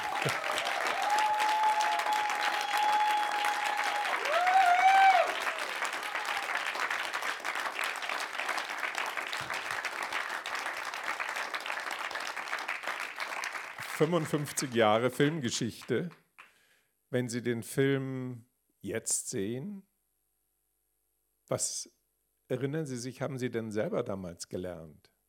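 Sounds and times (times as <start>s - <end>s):
audience applause: 0.0s - 15.4s
speech: 14.0s - 16.2s, 17.1s - 19.9s, 21.5s - 25.1s.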